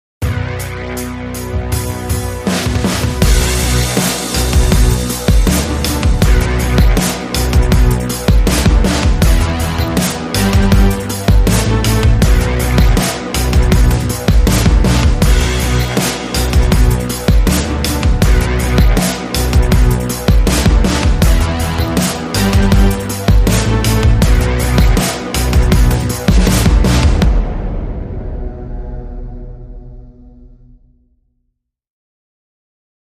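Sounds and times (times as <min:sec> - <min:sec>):
dramatic rhythm: 0:00.2 - 0:30.7.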